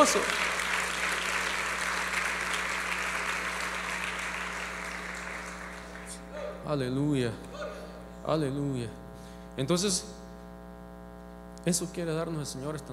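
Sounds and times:
speech: 0.0 - 0.5, 6.7 - 9.0, 9.6 - 10.2, 11.6 - 12.9
audience applause: 0.0 - 6.3
low steady hum: 0.0 - 12.9.

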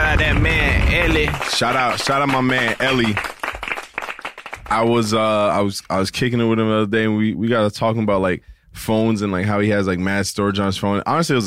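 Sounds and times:
hands clapping: 0.0 - 5.0
speech: 1.1 - 3.3, 4.7 - 11.4.

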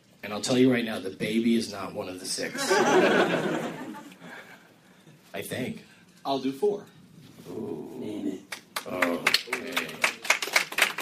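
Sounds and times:
speech: 0.2 - 4.0, 5.4 - 8.2, 8.8 - 10.0
laughter: 2.5 - 4.4
smattering of applause: 8.5 - 11.0.

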